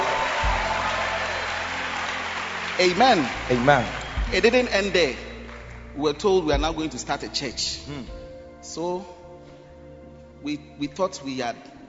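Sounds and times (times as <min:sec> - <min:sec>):
church congregation clapping during a testimony: 0:00.0 - 0:07.3
speech: 0:02.8 - 0:05.2, 0:06.0 - 0:09.2, 0:10.4 - 0:11.7.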